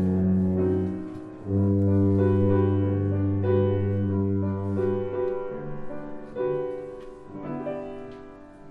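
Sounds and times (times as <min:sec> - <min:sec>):
tuba: 0:00.0 - 0:06.8.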